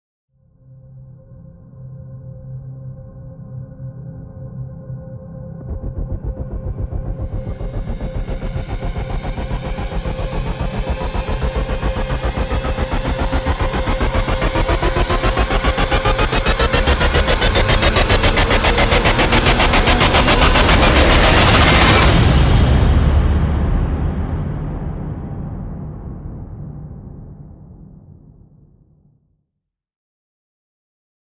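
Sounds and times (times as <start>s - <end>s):
rising sound: 5.6s - 28.0s.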